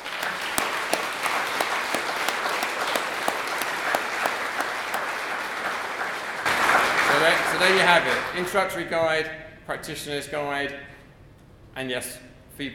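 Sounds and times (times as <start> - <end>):
audience applause: 0.0 - 8.7
speech: 7.2 - 10.9, 11.8 - 12.7.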